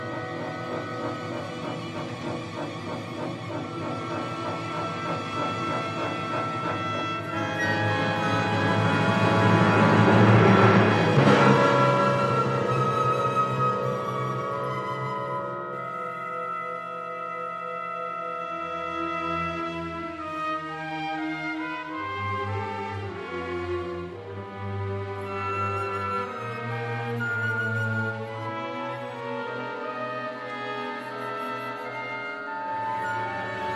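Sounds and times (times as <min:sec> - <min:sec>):
piano and orchestra concerto: 0:00.0 - 0:33.7.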